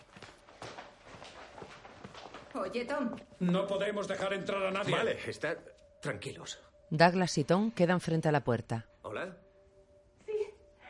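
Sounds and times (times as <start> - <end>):
footsteps of several people walking to door: 0.0 - 3.5
speech: 2.6 - 9.4.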